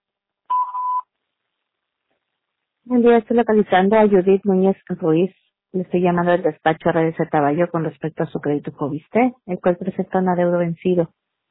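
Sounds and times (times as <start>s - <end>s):
voicemail answering machine electronic beep: 0.5s - 1.0s
speech: 2.9s - 11.2s.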